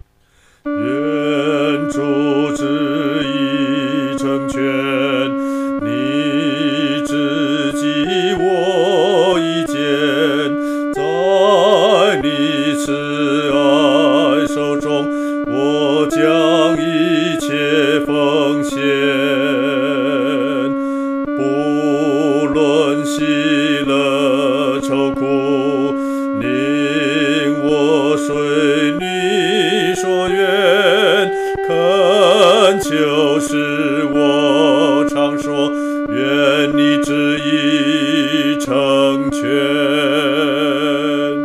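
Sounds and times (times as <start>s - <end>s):
solo singing, second voice: 0.7s - 41.4s.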